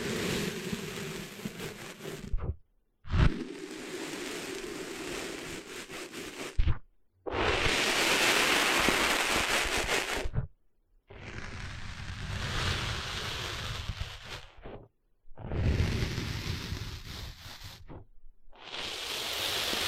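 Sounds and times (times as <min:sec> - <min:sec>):
sandy rustling on a beach: 0:00.0 - 0:02.4, 0:03.5 - 0:06.6, 0:07.4 - 0:10.3, 0:11.5 - 0:14.6, 0:15.7 - 0:17.9, 0:18.7 - 0:19.8.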